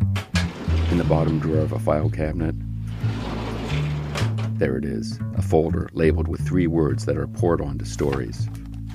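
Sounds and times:
door groaning creak: 0.2 - 1.9, 2.9 - 4.6
speech: 1.0 - 2.7, 4.6 - 8.6.

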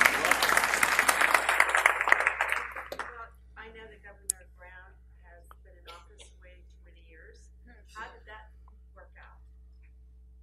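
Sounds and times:
audience clapping: 0.0 - 3.2.

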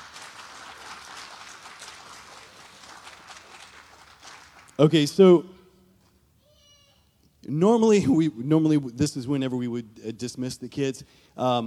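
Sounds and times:
audience applause: 0.0 - 4.8
speech: 4.8 - 5.6, 7.6 - 11.6.

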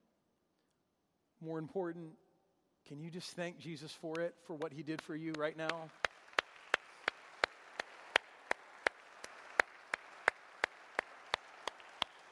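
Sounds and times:
speech: 1.4 - 2.2, 2.9 - 6.1
audience clapping: 4.1 - 12.3.

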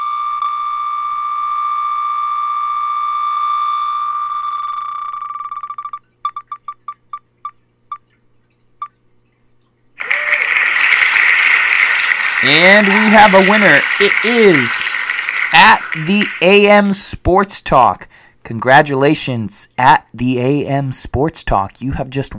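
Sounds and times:
sustained electronic tone: 0.0 - 6.9
applause: 10.0 - 17.0
speech: 12.4 - 14.9, 15.5 - 22.3
prize wheel ticking on a sports talk show: 12.4 - 16.8.

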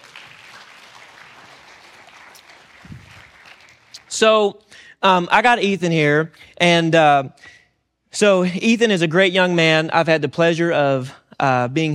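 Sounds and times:
small audience clapping: 0.0 - 4.1
speech: 4.2 - 11.9.

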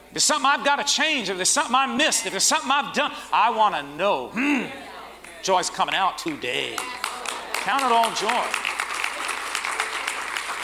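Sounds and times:
speech: 0.1 - 7.0, 7.6 - 8.6
audience clapping: 6.2 - 10.6.

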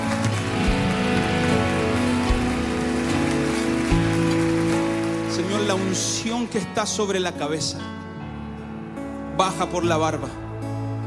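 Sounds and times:
audience applauding loudly: 0.0 - 7.2
music playing: 0.0 - 11.0
speech: 5.8 - 8.0, 9.4 - 10.4.

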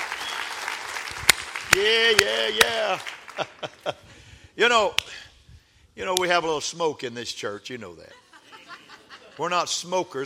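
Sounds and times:
audience applause: 0.0 - 3.6
speech: 1.7 - 5.1, 6.0 - 8.2, 9.4 - 10.2
laughter: 3.2 - 4.1, 8.1 - 9.7.

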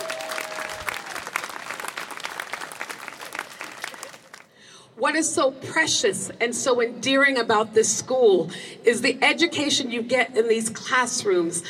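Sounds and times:
audience applause: 0.0 - 4.5
speech: 5.0 - 11.6.

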